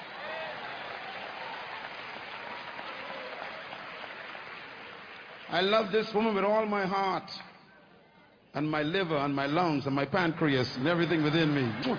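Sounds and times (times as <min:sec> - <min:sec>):
audience clapping: 0:00.0 - 0:07.5, 0:10.4 - 0:11.9
speech: 0:05.5 - 0:07.5, 0:08.5 - 0:11.9.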